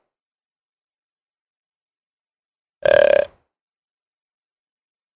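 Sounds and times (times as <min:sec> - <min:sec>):
deer bleating: 0:02.9 - 0:03.3.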